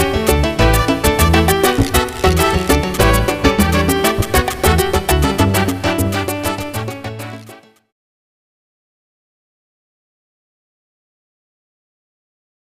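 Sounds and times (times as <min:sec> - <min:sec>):
Latin violin music: 0:00.0 - 0:07.7.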